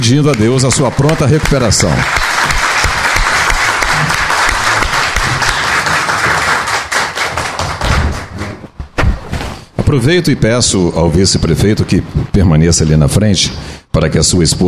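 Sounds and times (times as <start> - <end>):
speech: 0.1 - 2.7, 9.9 - 14.6
audience applause: 0.3 - 8.6.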